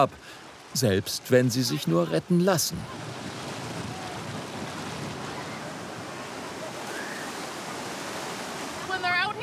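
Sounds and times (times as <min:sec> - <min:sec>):
speech: 0:00.0 - 0:03.3
ocean surf: 0:00.0 - 0:09.4.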